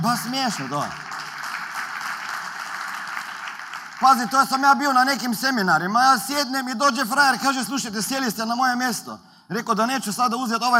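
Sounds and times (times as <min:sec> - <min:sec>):
speech: 0:00.0 - 0:01.1, 0:04.0 - 0:10.7
audience applause in a hall: 0:00.0 - 0:04.7.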